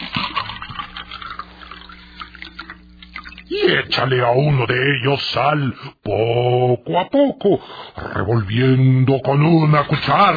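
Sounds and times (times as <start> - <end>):
water being poured into glasses: 0.0 - 4.2
speech: 3.5 - 10.3.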